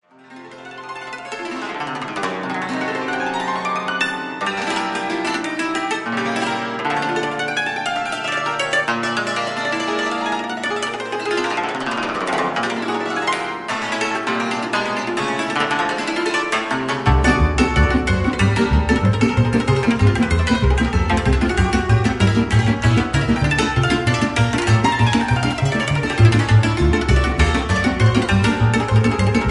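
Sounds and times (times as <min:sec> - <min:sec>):
cimbalom playing a csardas: 0:02.2 - 0:29.5.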